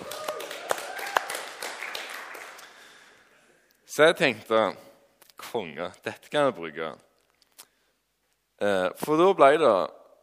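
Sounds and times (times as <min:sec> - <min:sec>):
audience clapping: 0:00.0 - 0:03.3
speech: 0:04.0 - 0:04.8, 0:05.5 - 0:07.1, 0:08.6 - 0:10.0.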